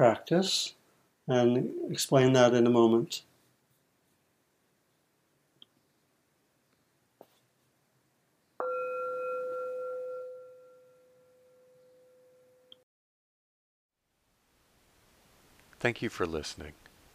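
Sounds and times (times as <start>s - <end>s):
speech: 0.0s - 3.3s, 15.8s - 16.8s
meditation bell ringing: 8.6s - 12.7s.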